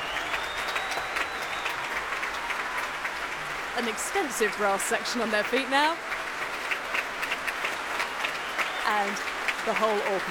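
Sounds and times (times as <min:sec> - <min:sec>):
large concert audience applauding orchestra: 0:00.0 - 0:10.2
speech: 0:03.8 - 0:06.1, 0:08.9 - 0:10.2.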